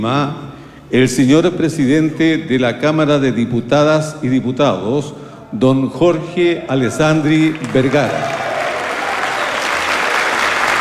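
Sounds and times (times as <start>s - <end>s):
speech: 0.0s - 8.4s
applause for the president of the Chamber of Deputies: 7.4s - 10.7s.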